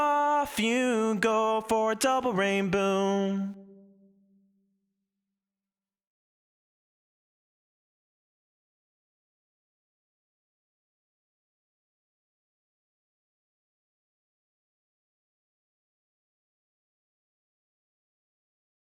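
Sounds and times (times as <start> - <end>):
person singing: 0.0 - 4.0.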